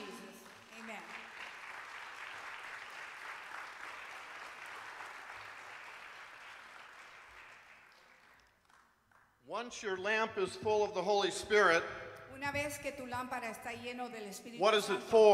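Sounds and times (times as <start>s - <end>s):
audience applause: 0.0s - 9.3s
speech: 9.5s - 15.3s.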